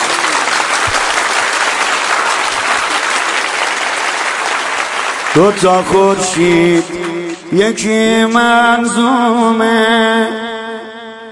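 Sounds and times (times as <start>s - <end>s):
audience applause at a Persian devotional chanting gathering: 0.0s - 7.5s
speech: 5.3s - 10.5s.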